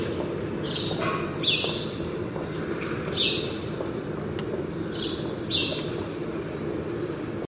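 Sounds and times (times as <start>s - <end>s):
house sparrow chirps: 0.0s - 7.4s.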